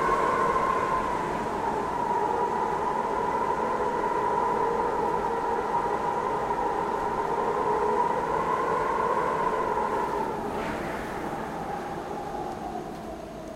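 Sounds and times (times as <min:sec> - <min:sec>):
very strong wind blowing over hills at peak hour: 0:00.0 - 0:13.5.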